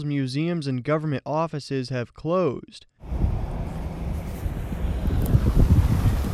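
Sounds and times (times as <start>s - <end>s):
speech: 0.0s - 3.2s
strong winter wind with blowing snow in downtown Albany, New York: 3.0s - 6.3s.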